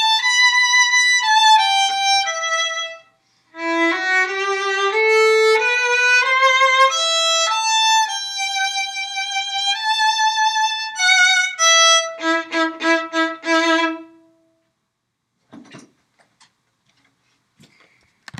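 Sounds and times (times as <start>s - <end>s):
violin: 0.0s - 14.4s.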